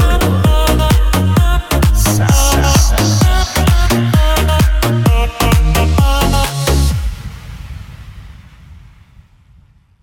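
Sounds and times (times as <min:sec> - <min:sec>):
commercial dance music: 0:00.0 - 0:06.9.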